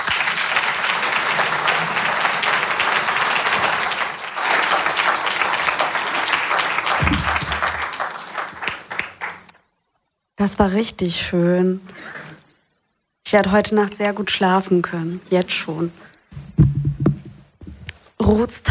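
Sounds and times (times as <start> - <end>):
audience applause: 0.0 - 9.6
speech: 10.4 - 12.2, 13.3 - 16.1, 18.3 - 18.6.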